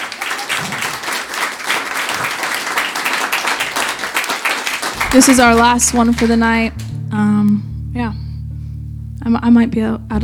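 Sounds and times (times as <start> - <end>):
audience applause at the end of a concert: 0.0 - 6.9
speech: 5.2 - 8.2, 9.2 - 10.2.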